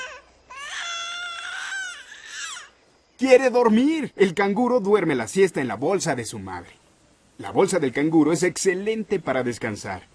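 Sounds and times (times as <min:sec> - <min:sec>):
baby crying: 0:00.0 - 0:02.8
speech: 0:03.2 - 0:06.8, 0:07.4 - 0:10.1.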